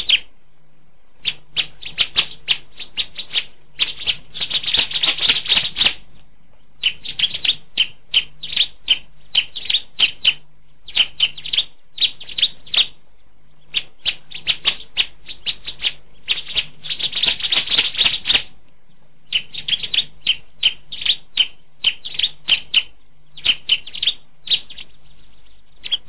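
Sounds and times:
Bar-winged Prinia song: 0.0 - 0.3, 1.2 - 6.0, 6.6 - 26.0.

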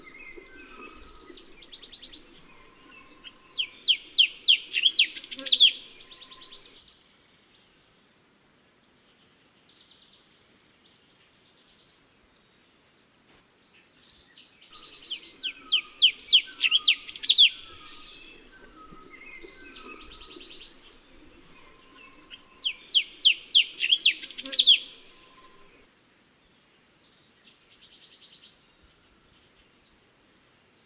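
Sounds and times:
cucak cungko bird calls: 0.0 - 6.8, 14.7 - 25.8.

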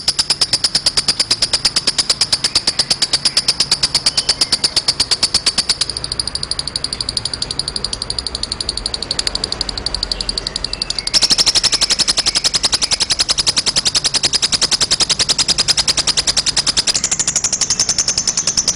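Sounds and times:
lovebird chirping chatter: 0.0 - 18.7.

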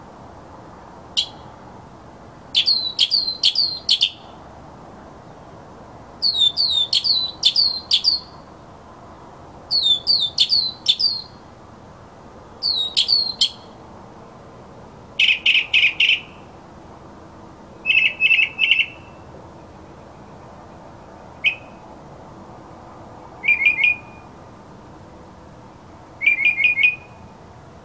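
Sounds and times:
mockingbird singing: 1.2 - 1.4, 2.6 - 4.3, 6.2 - 8.4, 9.7 - 11.4, 12.6 - 13.7, 15.2 - 16.4, 17.8 - 19.2, 21.4 - 21.8, 23.4 - 24.2, 26.2 - 27.2.

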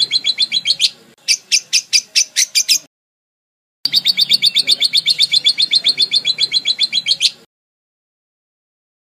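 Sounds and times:
lovebird chattering: 0.0 - 2.9, 3.9 - 7.5.

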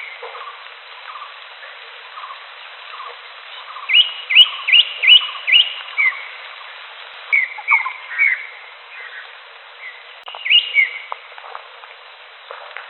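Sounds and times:
wild greater green leafbird song of upswept whistles: 0.0 - 11.3.

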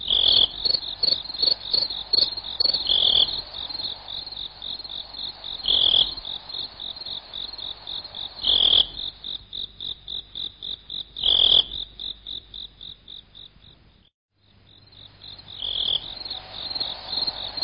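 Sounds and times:
slowed cricket chirps: 0.0 - 17.6.

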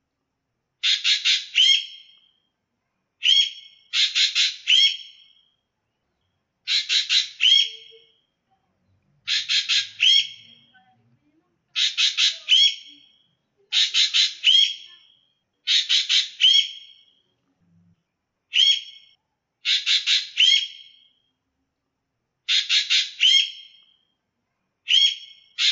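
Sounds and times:
ekek geling call variations: 0.8 - 2.4, 3.2 - 5.6, 6.6 - 8.4, 9.2 - 10.8, 11.7 - 17.3, 18.5 - 21.3, 22.5 - 24.2, 24.8 - 25.7.

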